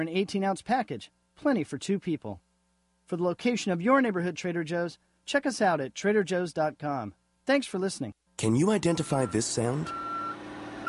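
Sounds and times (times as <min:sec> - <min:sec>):
speech: 0:00.0 - 0:02.4, 0:03.1 - 0:10.1
forklift reversing beeps: 0:08.8 - 0:10.8.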